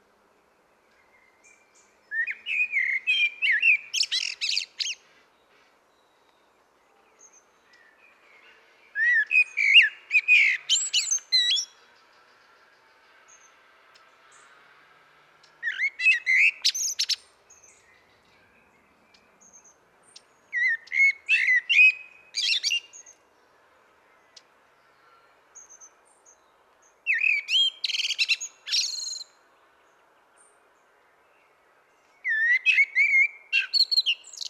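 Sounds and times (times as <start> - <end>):
common blackbird fluting song: 0.9 - 12.7, 15.4 - 23.2, 27.0 - 29.4, 32.0 - 34.4.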